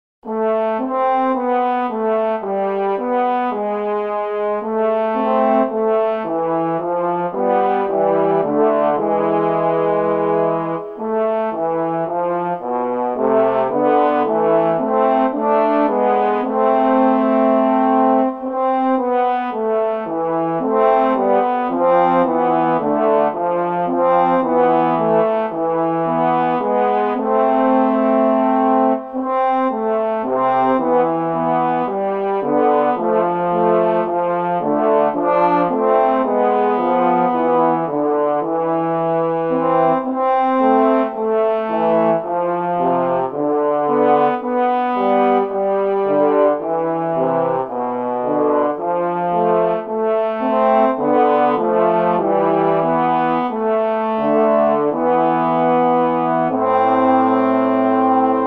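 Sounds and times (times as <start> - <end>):
small trombone duet in A: 0.2 - 58.4.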